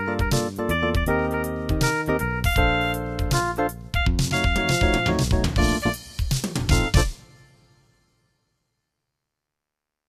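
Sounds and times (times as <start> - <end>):
jazzy music: 0.0 - 7.9.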